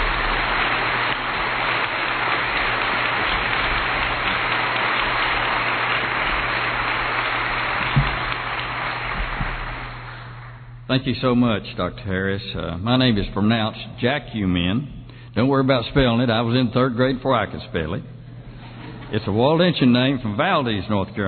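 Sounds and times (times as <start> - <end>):
audience applause welcoming a former state senator to the stage: 0.0 - 10.7
speech: 10.9 - 18.2, 19.1 - 21.2.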